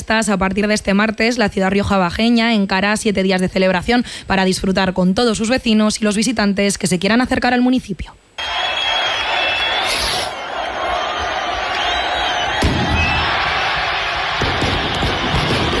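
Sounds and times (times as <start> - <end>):
speech: 0.1 - 8.7
crowd cheering in the town hall square opening Calahorra's fiestas: 8.4 - 15.7
chupinazo rocket bangs: 12.4 - 15.7.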